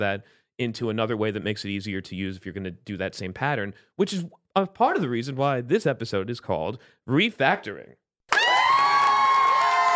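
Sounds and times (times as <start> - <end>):
speech: 0.0 - 8.0
studio audience cheering and whooping: 8.3 - 9.9.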